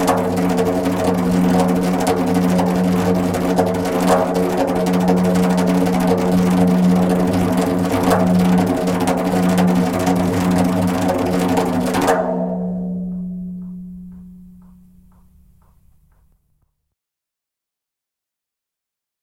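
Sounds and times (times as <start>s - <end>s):
slow djembe fills and drills: 0.0s - 15.9s.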